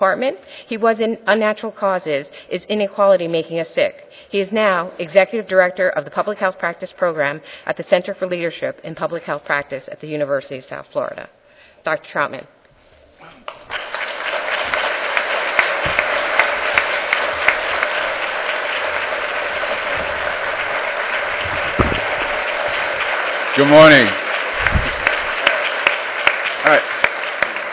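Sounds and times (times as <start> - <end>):
speech: 0.0 - 12.6, 23.6 - 24.2, 26.6 - 26.9
audience applause for a speaker at a public health lecture: 13.5 - 27.7.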